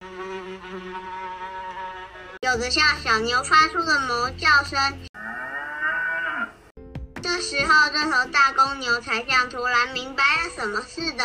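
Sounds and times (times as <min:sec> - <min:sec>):
buzzing mosquitoes and flies: 0:00.0 - 0:02.4
speech: 0:02.5 - 0:05.1, 0:07.4 - 0:11.2.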